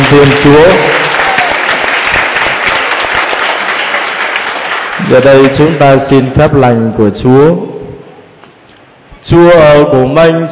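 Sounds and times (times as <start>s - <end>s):
congregation clapping at Christmas Mass: 0.0s - 6.6s
speech: 0.1s - 1.0s, 5.1s - 7.7s, 9.3s - 10.4s.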